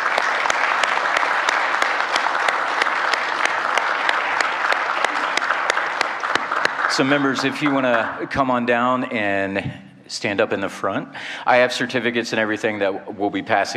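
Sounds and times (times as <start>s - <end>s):
audience applauding marching band members: 0.0s - 8.7s
speech: 7.0s - 13.7s.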